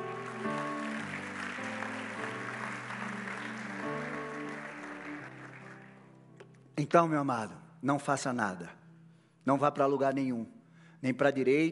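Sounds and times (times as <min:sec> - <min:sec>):
audience applauding: 0:00.0 - 0:06.2
sustained keyboard chords: 0:00.0 - 0:06.8
speech: 0:06.8 - 0:08.8, 0:09.5 - 0:11.7.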